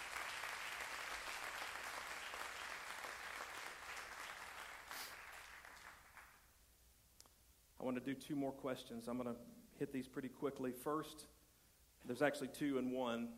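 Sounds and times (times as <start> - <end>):
crowd clapping: 0.0 - 6.5
speech: 7.8 - 11.4, 12.0 - 13.3.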